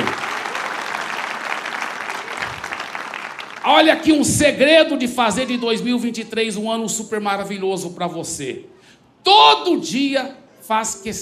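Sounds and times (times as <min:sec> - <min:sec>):
audience applause: 0:00.0 - 0:03.9
speech: 0:03.7 - 0:11.1.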